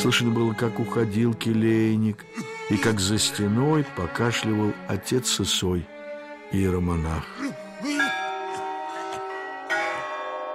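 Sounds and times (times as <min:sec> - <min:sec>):
speech: 0:00.0 - 0:08.0
monastery clock bell striking the quarter: 0:08.0 - 0:10.5.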